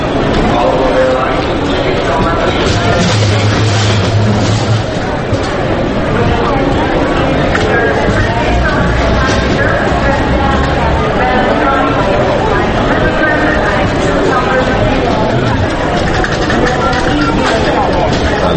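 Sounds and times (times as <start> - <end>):
crowd chatter in busy airport terminal: 0.0 - 18.5.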